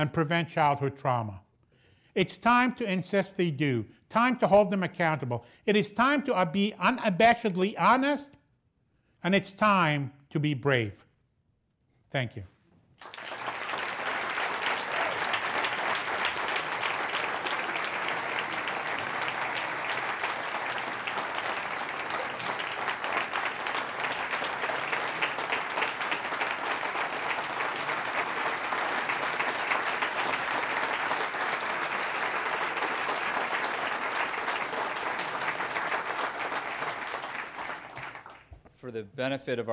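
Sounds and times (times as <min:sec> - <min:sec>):
speech: 0:00.0 - 0:01.4, 0:02.2 - 0:08.4, 0:09.2 - 0:11.1, 0:12.1 - 0:13.2, 0:39.2 - 0:39.7
standing ovation applause from an entire room after a speech: 0:13.0 - 0:38.5.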